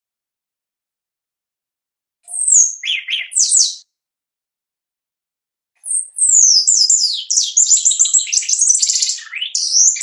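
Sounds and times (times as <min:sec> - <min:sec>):
Shiny cowbird singing: 0:02.3 - 0:03.7, 0:05.8 - 0:10.0.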